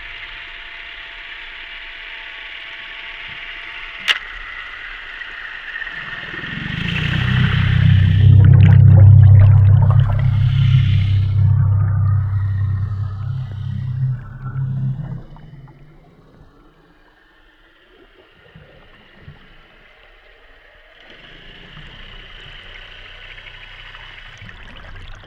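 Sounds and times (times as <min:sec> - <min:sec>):
gabarre boat motor heard underwater in Vézac: 0:05.7 - 0:16.8, 0:21.1 - 0:25.2.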